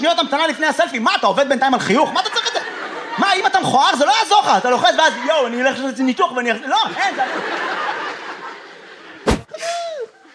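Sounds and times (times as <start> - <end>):
speech: 0.0 - 2.6, 3.2 - 7.8
laughter: 1.9 - 10.3
door slamming: 9.2 - 9.6.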